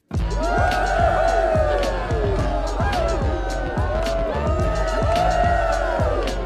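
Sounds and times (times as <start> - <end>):
crowd applause and cheering: 0.0 - 6.4.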